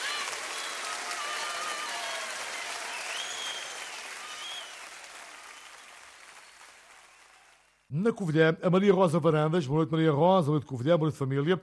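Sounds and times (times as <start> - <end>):
applause: 0.0 - 7.9
speech: 7.9 - 11.6.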